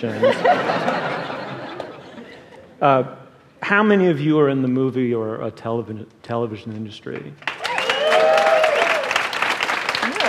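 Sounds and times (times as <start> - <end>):
speech: 0.0 - 1.1, 2.8 - 7.5
laughter: 0.0 - 2.8
crowd clapping: 7.2 - 10.2
crowd whooping and shouting: 7.6 - 9.4, 10.0 - 10.2.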